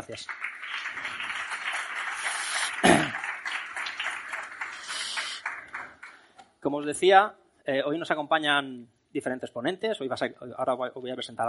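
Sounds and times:
audience applause: 0:00.0 - 0:06.2
speech: 0:00.1 - 0:01.4, 0:06.6 - 0:11.4.

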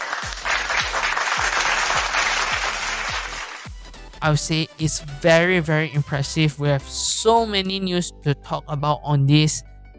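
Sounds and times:
applause: 0:00.0 - 0:03.7
speech: 0:04.2 - 0:09.7.

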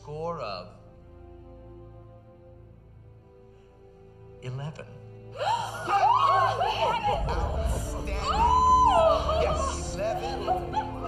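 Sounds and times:
speech: 0:00.1 - 0:00.8, 0:04.4 - 0:06.0
excited shouts and whoops: 0:05.4 - 0:11.0
crowd cheering and laughing: 0:05.8 - 0:11.0.

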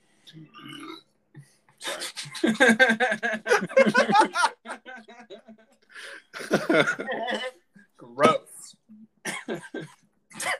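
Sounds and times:
speech: 0:00.3 - 0:01.6, 0:02.4 - 0:04.4
loud meaty burp: 0:00.5 - 0:01.1
laughter: 0:02.0 - 0:07.4.

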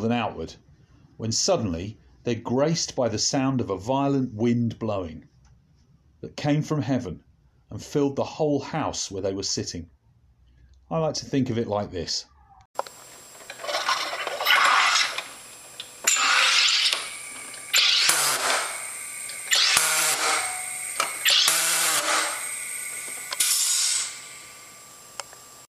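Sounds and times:
speech: 0:00.0 - 0:05.3, 0:06.2 - 0:10.0, 0:10.9 - 0:13.0
SodaStream carbonating a bottle of water: 0:14.7 - 0:24.7.

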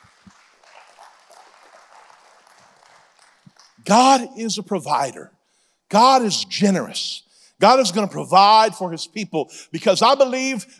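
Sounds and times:
audience clapping hands: 0:00.0 - 0:04.2
speech: 0:03.9 - 0:10.7.

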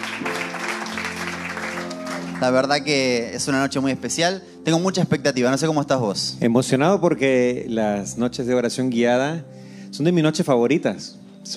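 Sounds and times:
audience applause: 0:00.0 - 0:02.8
speech: 0:02.4 - 0:11.5.

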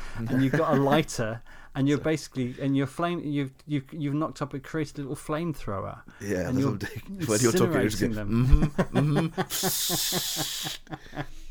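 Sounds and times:
laughter: 0:00.2 - 0:01.2, 0:07.2 - 0:11.4
speech: 0:00.2 - 0:11.4
radiator hissing: 0:09.4 - 0:11.0.

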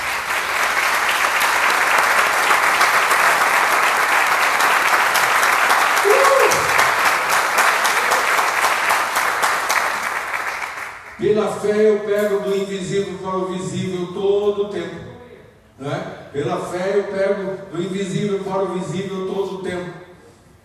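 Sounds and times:
audience applause: 0:00.0 - 0:11.2
speech: 0:11.5 - 0:15.0, 0:15.8 - 0:20.0.

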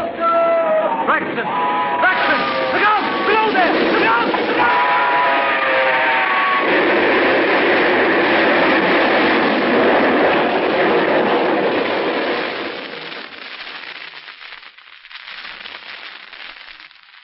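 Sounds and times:
train engine roaring along the track: 0:00.0 - 0:12.8
speech: 0:01.2 - 0:01.9
tonal whine: 0:01.6 - 0:12.8.

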